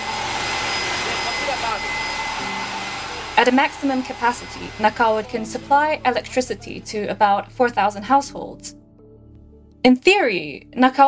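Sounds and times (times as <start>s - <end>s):
steam turbine spinning at high speed: 0.0s - 6.4s
speech: 3.4s - 8.9s, 9.8s - 11.0s.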